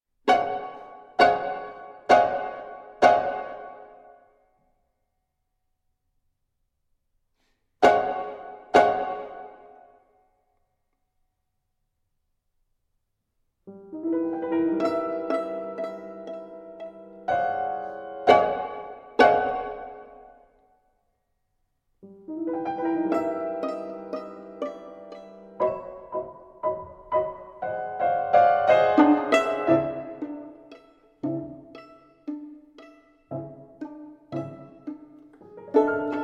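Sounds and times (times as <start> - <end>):
piano: 0.2 - 4.5, 7.8 - 10.2, 13.6 - 20.8, 22.0 - 36.2
violin: 0.3 - 4.1, 7.8 - 9.9, 13.8 - 20.4, 22.1 - 36.2.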